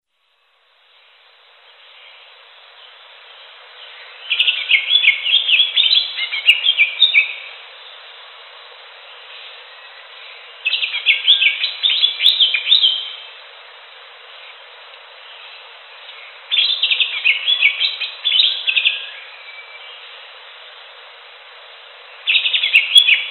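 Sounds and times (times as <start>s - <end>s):
Greater green leafbird song of rapid chirps and slurred whistles: 4.3s - 7.4s, 10.7s - 13.2s, 16.6s - 19.1s, 22.3s - 23.2s.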